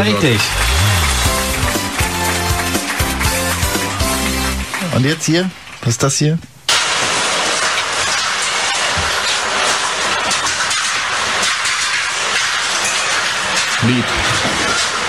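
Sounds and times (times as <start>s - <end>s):
speech: 0.0s - 1.0s, 5.0s - 6.5s, 13.8s - 14.2s
house demolition at a construction site: 0.0s - 15.0s.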